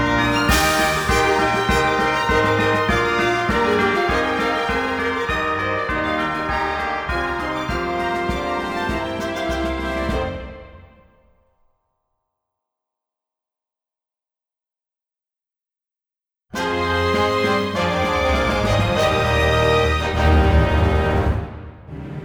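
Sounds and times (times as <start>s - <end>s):
accompaniment backing track music: 0.0s - 11.1s, 16.6s - 21.8s.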